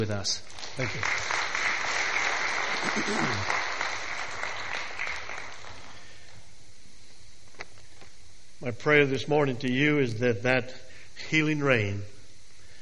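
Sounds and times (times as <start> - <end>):
speech: 0.0 - 1.7, 2.8 - 3.6, 8.6 - 12.1
crowd applause: 0.6 - 6.2.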